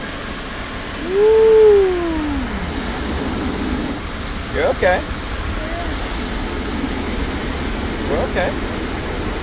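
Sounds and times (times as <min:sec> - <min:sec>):
automatic car wash spraying water: 0:00.0 - 0:09.4
speech: 0:01.1 - 0:01.3, 0:04.8 - 0:05.2.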